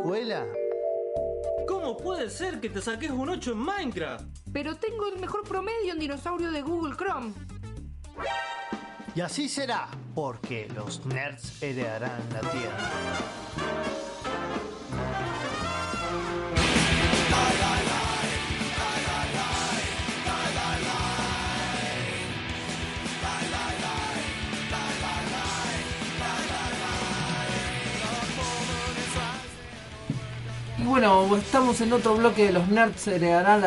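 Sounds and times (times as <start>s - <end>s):
speech: 0.0s - 0.6s, 1.6s - 7.5s, 8.2s - 13.8s, 30.9s - 33.6s
rock song: 8.3s - 33.6s.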